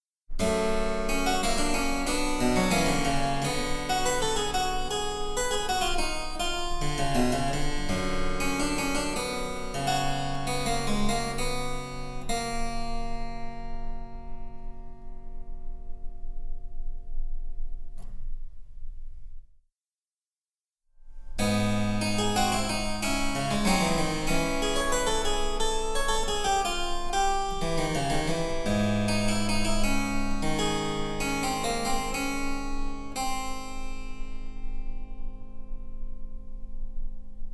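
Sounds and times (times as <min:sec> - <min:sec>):
harpsichord: 0:00.4 - 0:13.4, 0:21.4 - 0:33.9.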